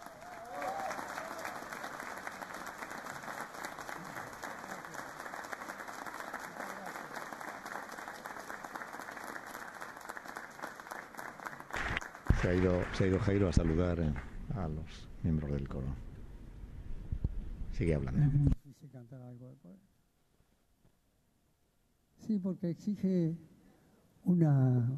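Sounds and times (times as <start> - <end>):
large audience applause for a choir: 0.0 - 14.4
faint crowd murmur: 2.8 - 8.8
speech: 12.4 - 16.1, 17.8 - 18.5, 22.6 - 23.5, 24.4 - 24.9.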